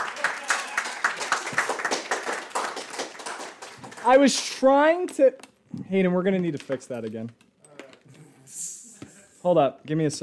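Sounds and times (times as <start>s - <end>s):
audience applause: 0.0s - 4.5s
speech: 4.0s - 7.4s, 9.4s - 10.2s.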